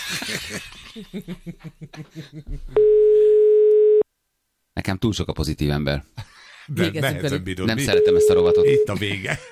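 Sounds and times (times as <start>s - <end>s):
people laughing: 0.0s - 2.8s, 6.2s - 8.0s, 8.7s - 9.5s
speech: 0.1s - 3.2s, 4.8s - 9.5s
telephone line tone on an unanswered call: 2.8s - 4.0s, 7.9s - 8.9s.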